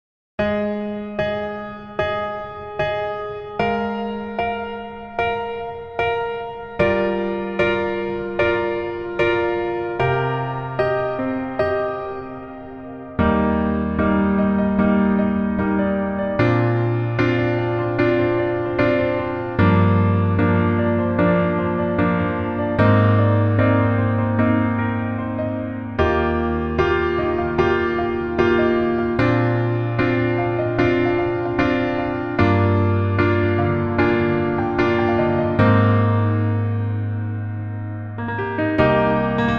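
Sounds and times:
piano melody backing track: 0.4 - 39.5.

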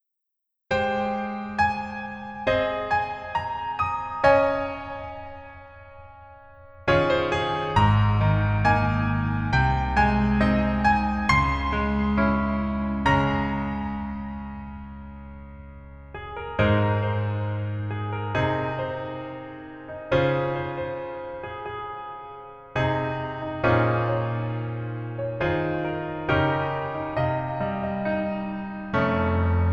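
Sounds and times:
piano melody backing track: 0.7 - 29.7.

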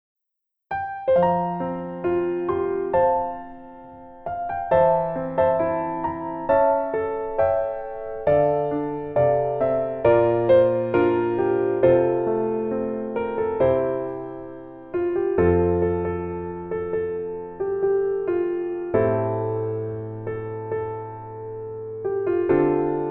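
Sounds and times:
piano melody instrumental in female key: 0.7 - 23.1.

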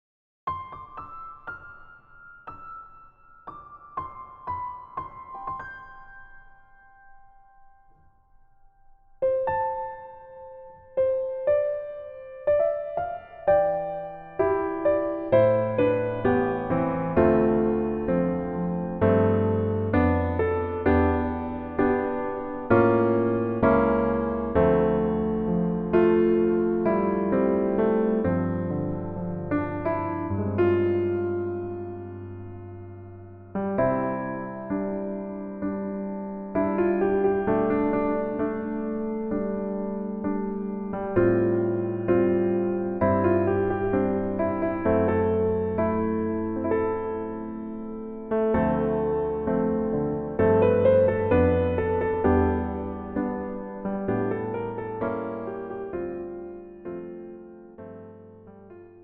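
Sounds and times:
piano melody backing track: 0.5 - 59.0.

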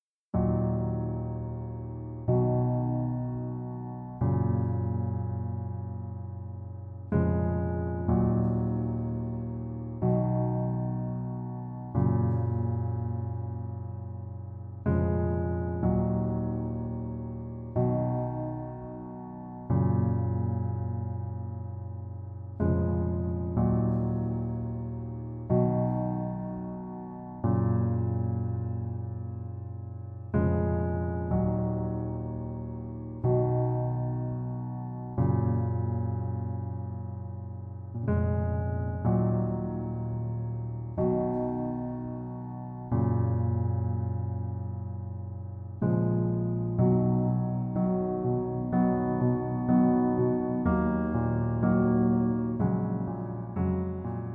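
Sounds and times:
piano: 0.0 - 54.3.

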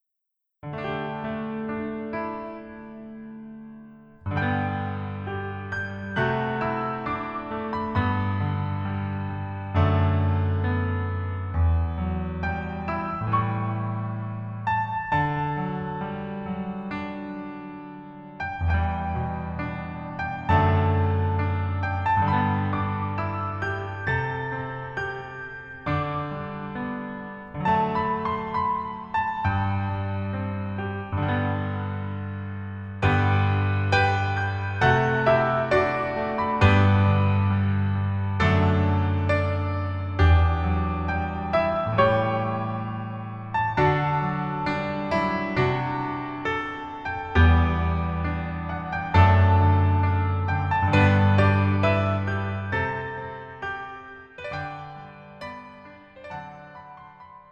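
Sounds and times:
piano melody backing track: 0.6 - 57.4.

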